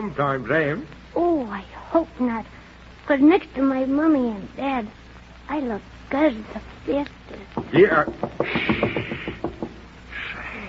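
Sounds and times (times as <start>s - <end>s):
speech: 0.0s - 9.2s
knocking on a door: 7.6s - 9.9s.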